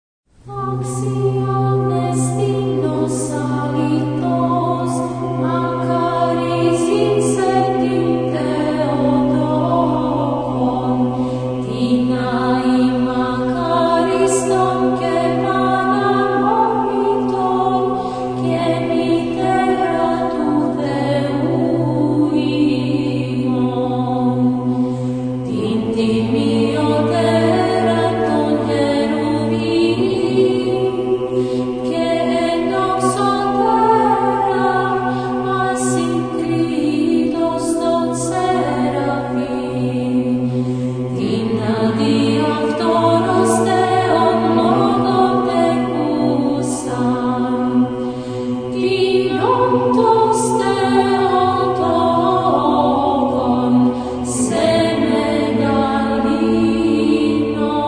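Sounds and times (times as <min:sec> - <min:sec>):
Byzantine chant: 0:00.4 - 0:57.8.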